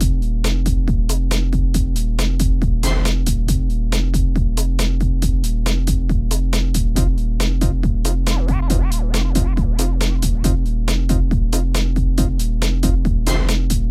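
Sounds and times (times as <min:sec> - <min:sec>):
hardcore breakbeat music in F minor: 0:00.0 - 0:13.8
laughter: 0:08.2 - 0:10.6.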